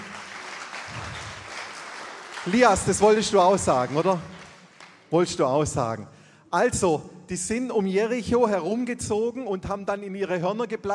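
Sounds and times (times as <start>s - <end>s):
audience applause: 0.0s - 5.1s
speech: 2.4s - 4.3s, 5.1s - 10.9s.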